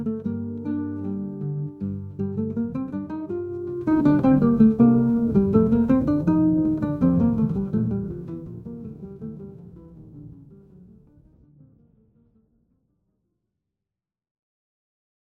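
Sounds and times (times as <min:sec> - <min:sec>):
flamenco music: 0:00.0 - 0:11.0.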